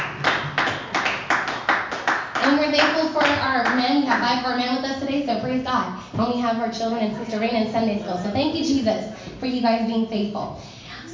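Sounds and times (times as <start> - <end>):
audience clapping in rhythm: 0.0 - 4.4
speech: 2.5 - 10.8.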